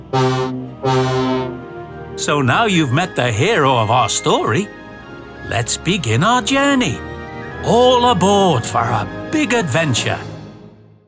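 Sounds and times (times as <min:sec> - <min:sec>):
diesel shunting engine horn blasts: 0:00.0 - 0:01.9
speech: 0:00.1 - 0:01.6, 0:02.2 - 0:04.8, 0:05.4 - 0:10.3.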